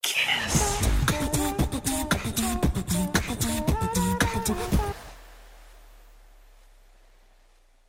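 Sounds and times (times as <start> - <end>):
beatbox: 0.5 - 4.8.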